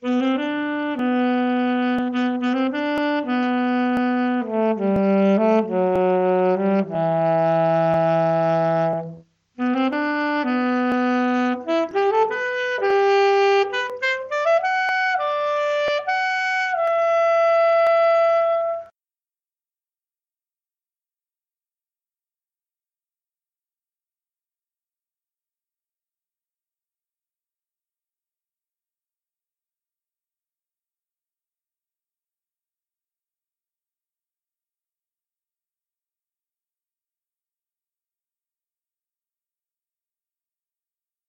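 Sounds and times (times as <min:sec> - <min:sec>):
saxophone: 0:00.0 - 0:19.0.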